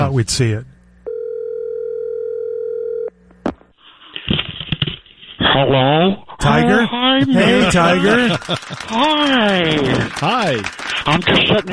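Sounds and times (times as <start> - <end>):
speech: 0.1 - 0.7, 5.6 - 11.7
telephone dial tone: 1.1 - 3.2
laughter: 6.8 - 11.7.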